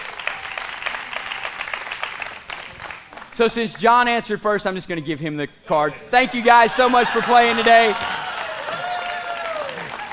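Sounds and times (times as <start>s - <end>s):
audience applause: 0.0s - 3.3s, 6.9s - 10.1s
speech: 3.4s - 8.2s.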